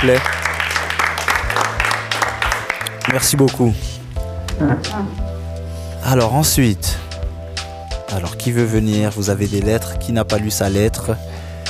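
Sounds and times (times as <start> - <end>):
speech: 0.0 - 0.4, 3.1 - 4.0, 4.6 - 5.3, 6.0 - 7.0, 8.1 - 11.3
audience applauding: 0.0 - 3.5.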